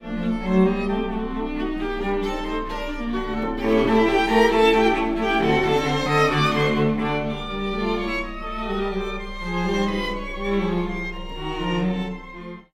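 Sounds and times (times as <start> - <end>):
quintet playing: 0.4 - 12.2.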